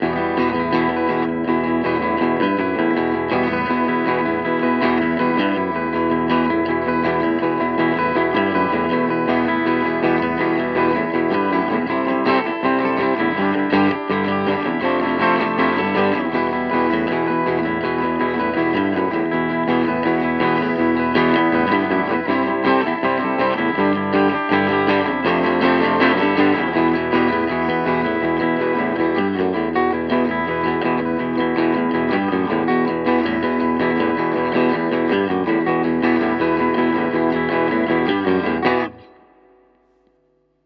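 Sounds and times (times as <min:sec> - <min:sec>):
electric guitar through Maybach clean amplifier: 0:00.0 - 0:40.6.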